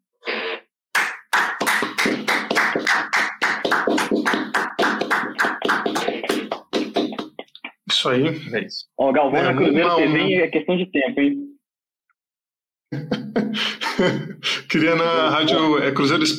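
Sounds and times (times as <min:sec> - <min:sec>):
small group applauding: 0:01.0 - 0:07.5
speech: 0:08.0 - 0:11.5, 0:12.9 - 0:16.3
laughter: 0:12.9 - 0:15.8.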